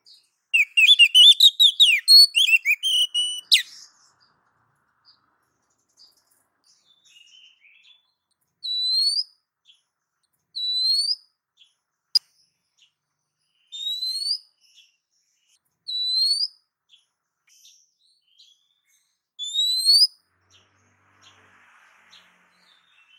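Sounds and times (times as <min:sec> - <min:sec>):
female oriental magpie-robin giving a soft rising whistled call: 0:00.6 - 0:04.1, 0:08.7 - 0:09.3, 0:10.6 - 0:11.2, 0:13.7 - 0:14.5, 0:15.9 - 0:16.6, 0:19.4 - 0:20.2.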